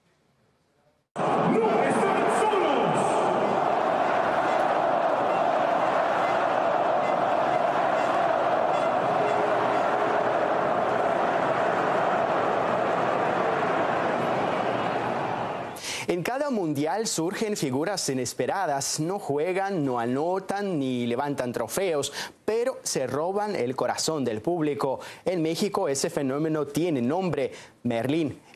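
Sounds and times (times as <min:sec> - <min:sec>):
stadium crowd chanting at Estadio Ciudad de México: 0:01.2 - 0:15.8
speech: 0:16.1 - 0:28.4.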